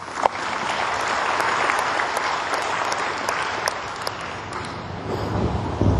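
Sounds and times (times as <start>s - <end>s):
audience applause for honorees at a ceremony: 0.0s - 5.8s.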